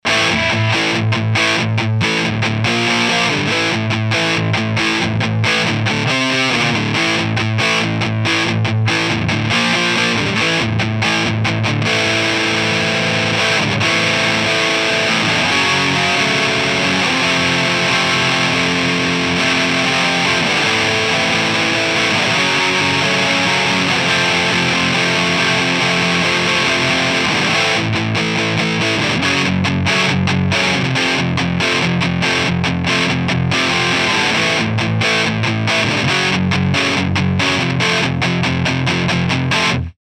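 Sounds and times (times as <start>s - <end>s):
distorted amplifier: 0.0s - 39.9s.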